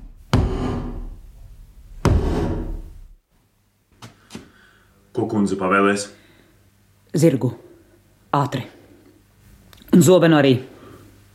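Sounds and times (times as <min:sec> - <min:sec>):
mallet striking a wooden board: 0:00.3 - 0:01.2, 0:02.0 - 0:03.0
speech: 0:05.2 - 0:06.2, 0:07.1 - 0:07.7, 0:08.3 - 0:08.8, 0:10.0 - 0:10.7.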